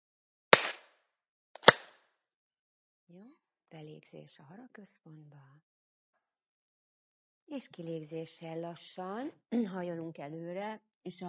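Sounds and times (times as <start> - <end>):
hand claps: 0.6 - 0.8, 1.6 - 2.0
speech: 3.1 - 5.7, 7.5 - 11.2.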